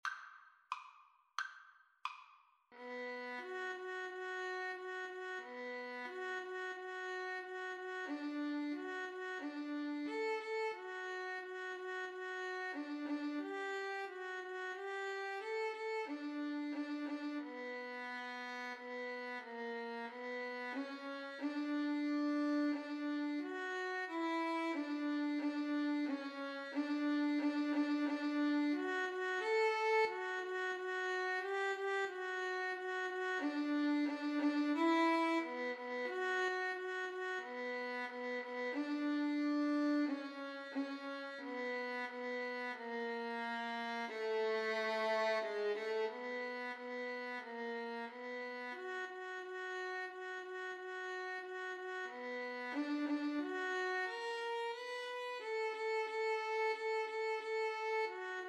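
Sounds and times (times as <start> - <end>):
violin pavane: 2.8 - 58.4.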